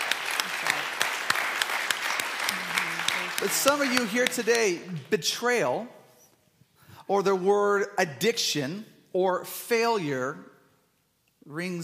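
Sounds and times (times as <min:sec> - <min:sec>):
audience applauding: 0:00.0 - 0:05.2
speech: 0:03.4 - 0:06.0, 0:07.1 - 0:10.5, 0:11.5 - 0:11.8.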